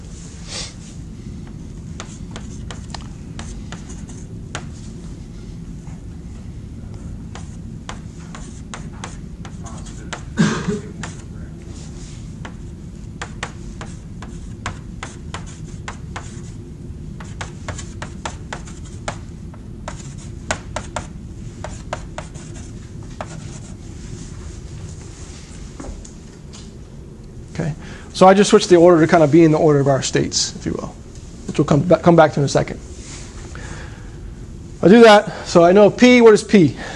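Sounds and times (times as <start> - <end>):
writing strokes writing out an equation of motion: 2.0 - 4.9, 7.3 - 10.4, 11.0 - 16.6, 17.2 - 24.4
speech: 28.2 - 31.0, 31.6 - 32.9, 34.8 - 36.9.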